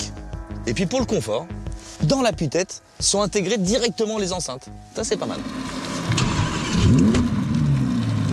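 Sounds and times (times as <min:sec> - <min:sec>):
speech: 0:00.7 - 0:05.8
naturally aspirated V10 supercar engine starting and running: 0:05.1 - 0:08.3.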